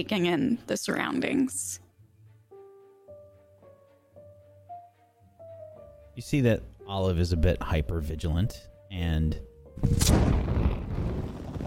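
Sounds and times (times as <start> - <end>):
speech: 0.0 - 1.8, 6.2 - 10.4
whooshing blast of green flame: 9.8 - 11.6.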